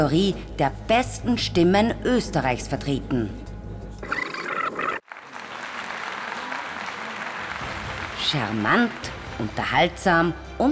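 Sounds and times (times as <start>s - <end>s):
speech: 0.0s - 3.4s, 8.3s - 10.7s
audience applause: 5.0s - 9.0s.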